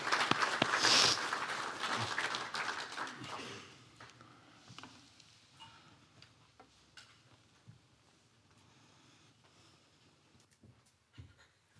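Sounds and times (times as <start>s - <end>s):
audience applause: 0.0s - 3.6s.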